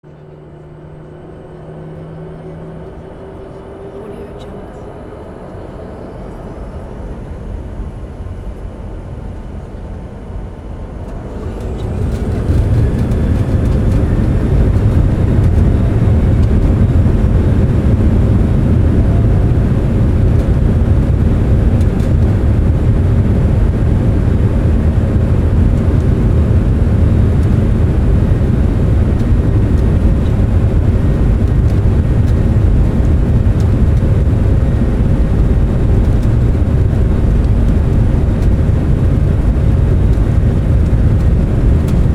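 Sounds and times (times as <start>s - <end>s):
passenger jet taking off: 0.1s - 42.1s.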